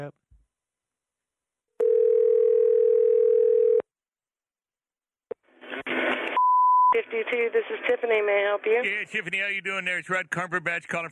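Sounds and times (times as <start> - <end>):
telephone dial tone: 1.8 - 3.8
speech: 7.0 - 11.1.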